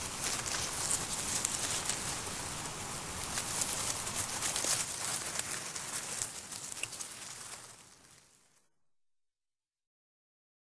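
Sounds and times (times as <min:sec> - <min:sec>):
Erinaceus europaeus: 0:00.0 - 0:07.8.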